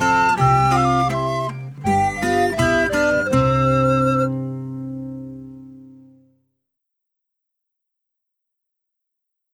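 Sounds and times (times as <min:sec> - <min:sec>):
instrumental music: 0:00.0 - 0:06.4.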